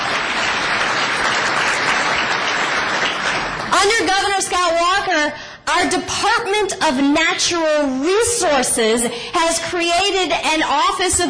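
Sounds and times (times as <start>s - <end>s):
audience applause: 0.0s - 3.8s
speech: 3.8s - 11.2s.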